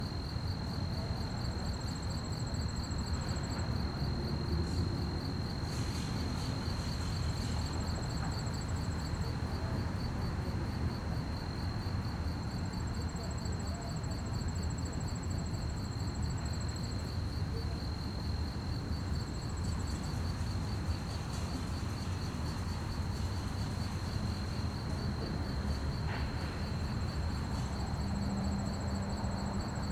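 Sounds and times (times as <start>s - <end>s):
cricket chorus chirping: 0.0s - 29.8s.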